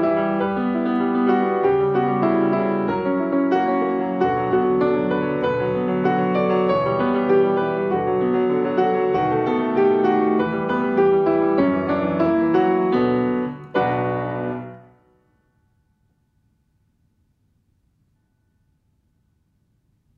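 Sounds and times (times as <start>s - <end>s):
solo piano: 0.0s - 15.5s.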